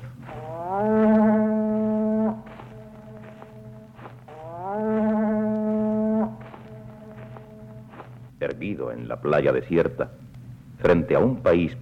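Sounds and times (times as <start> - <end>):
conch shell horn being blown: 0.3 - 8.2
speech: 8.6 - 11.8.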